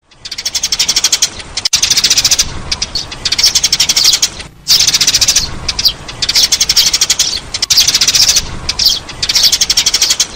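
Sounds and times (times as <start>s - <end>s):
sparrow chirping: 0.0s - 10.3s.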